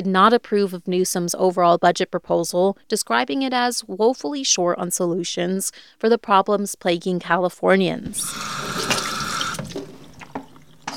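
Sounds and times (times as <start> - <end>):
speech: 0.0 - 9.0
water running from a sink tap as a woman washes her hands in Fresno County: 8.1 - 10.9
water splashing and dripping: 8.4 - 10.9.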